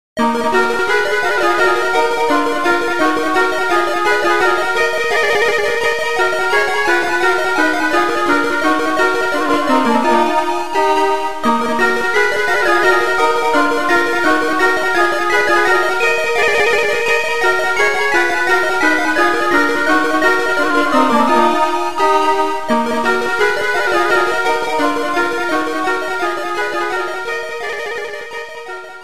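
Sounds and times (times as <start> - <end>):
RPG-style fantasy church music: 0.2 - 29.0.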